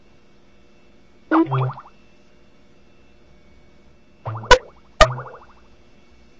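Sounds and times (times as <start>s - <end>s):
odd Mac computer sounds: 1.3s - 1.9s, 4.3s - 5.5s.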